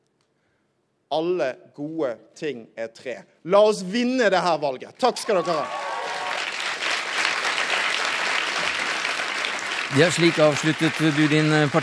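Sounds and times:
speech: 1.1 - 5.8, 9.9 - 11.8
crowd applauding after speech: 5.2 - 11.8.

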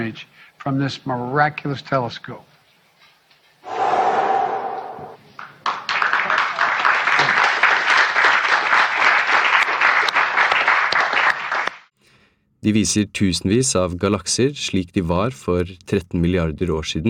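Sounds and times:
speech: 0.0 - 2.5, 12.6 - 17.0
brief crowd cheer: 3.7 - 5.2
crowd applause at telescope image presentation: 3.8 - 11.8.

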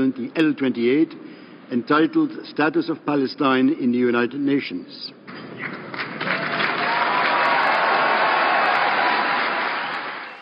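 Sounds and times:
speech: 0.0 - 6.1
applause in the UN General Assembly hall: 5.6 - 10.4.

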